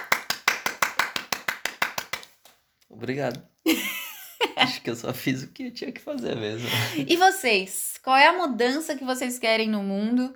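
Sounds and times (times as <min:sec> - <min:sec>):
person applauding: 0:00.0 - 0:02.3
speech: 0:02.9 - 0:03.9, 0:04.6 - 0:10.3
laughter: 0:06.6 - 0:07.2.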